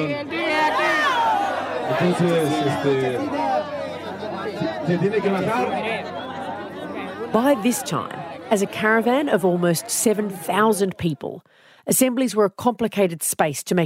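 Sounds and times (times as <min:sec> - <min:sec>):
large stadium crowd protesting and shouting: 0:00.0 - 0:11.3
speech: 0:01.9 - 0:03.5, 0:04.8 - 0:06.2, 0:07.3 - 0:13.8.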